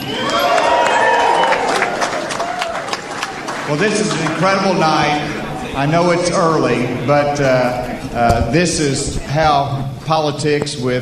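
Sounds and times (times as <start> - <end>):
large crowd applauding: 0.0 - 6.1
large crowd cheering: 0.0 - 8.2
speech: 3.7 - 11.0.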